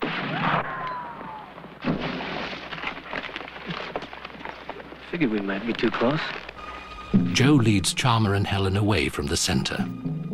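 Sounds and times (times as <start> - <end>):
gunshot from a sniper: 0.0 - 2.5
speech: 5.1 - 6.4, 7.1 - 10.2.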